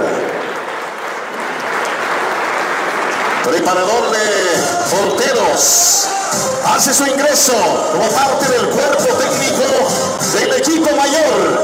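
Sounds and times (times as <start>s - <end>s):
crowd applause: 0.0s - 6.5s
speech: 3.4s - 11.6s.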